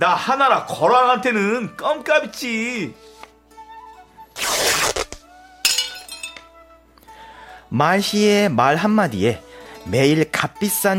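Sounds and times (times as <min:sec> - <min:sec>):
speech: 0:00.0 - 0:03.1, 0:07.7 - 0:10.9
ceramic dishes shattering: 0:05.6 - 0:06.5.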